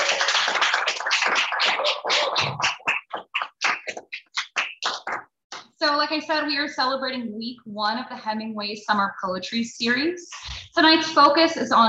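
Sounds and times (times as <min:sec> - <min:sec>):
crowd applauding: 0:00.0 - 0:05.3
speech: 0:06.0 - 0:11.8.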